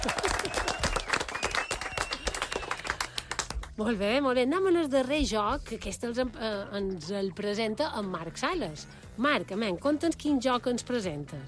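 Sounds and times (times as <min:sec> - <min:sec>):
audience applause: 0:00.0 - 0:03.6
speech: 0:03.8 - 0:11.4.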